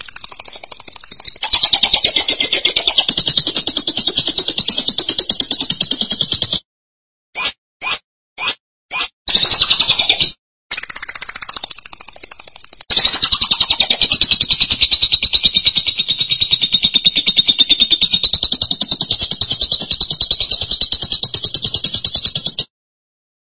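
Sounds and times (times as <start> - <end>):
lovebird song: 0.0 - 6.6, 7.4 - 22.6.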